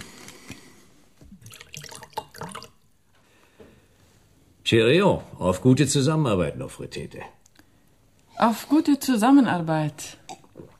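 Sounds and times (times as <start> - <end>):
whisky poured into glasses: 1.3 - 2.9
speech: 4.7 - 7.4, 8.4 - 10.7.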